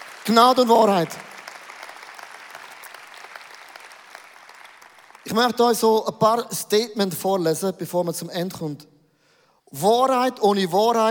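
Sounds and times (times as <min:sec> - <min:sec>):
audience applause: 0:00.0 - 0:05.6
speech: 0:00.2 - 0:01.3, 0:05.3 - 0:08.9, 0:09.7 - 0:11.0.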